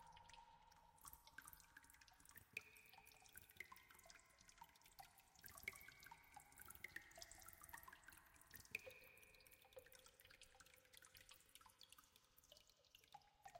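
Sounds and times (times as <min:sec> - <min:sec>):
water dripping: 0:00.0 - 0:13.5.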